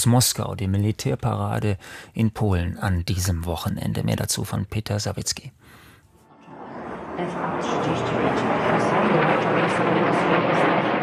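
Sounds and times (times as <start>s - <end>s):
speech: 0.0s - 5.8s, 7.2s - 10.8s
F-35 fighter jets thundering over central Warsaw: 6.4s - 11.0s.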